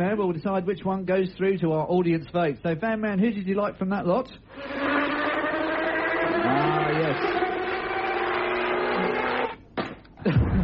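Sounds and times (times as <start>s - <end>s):
speech: 0.0s - 5.2s, 6.4s - 7.4s
falling swooping whine: 4.5s - 9.6s
harsh insect-like buzzing drone: 4.5s - 9.6s.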